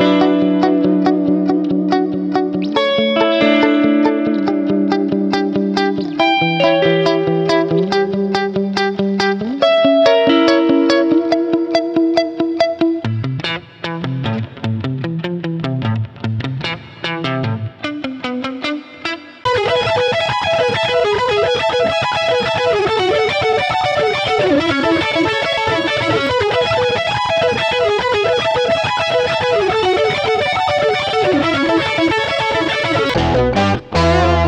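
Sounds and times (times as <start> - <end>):
rock guitar over trap beat: 0.0 - 34.4.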